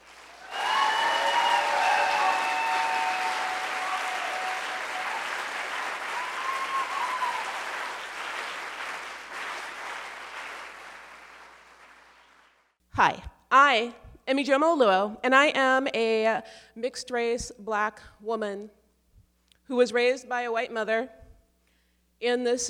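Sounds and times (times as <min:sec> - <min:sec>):
applause welcoming a racial justice author onto a Seattle stage: 0:00.0 - 0:12.6
high cheers: 0:00.1 - 0:09.6
speech: 0:13.0 - 0:18.8, 0:19.7 - 0:21.2, 0:22.2 - 0:22.6.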